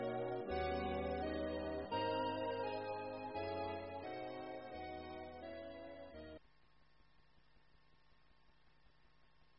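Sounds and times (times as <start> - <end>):
jazz music: 0.0 - 6.4.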